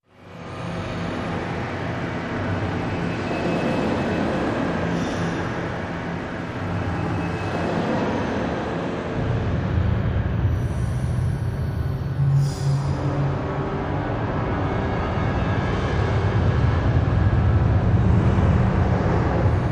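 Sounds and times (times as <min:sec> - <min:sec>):
ambience: 0:00.1 - 0:19.7.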